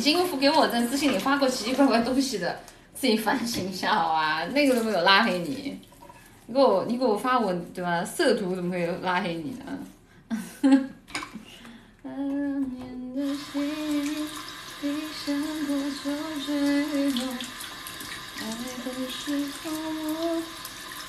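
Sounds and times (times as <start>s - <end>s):
speech: 0.0s - 5.9s, 6.5s - 11.3s, 12.1s - 17.5s, 18.4s - 20.6s
tap water running while washing dishes: 0.0s - 6.4s, 13.2s - 21.0s.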